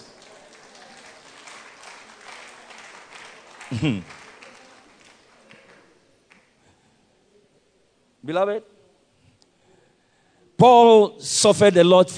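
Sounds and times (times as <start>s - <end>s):
audience clapping: 0.0s - 6.6s
speech: 3.7s - 4.2s, 8.3s - 8.8s, 10.6s - 12.1s.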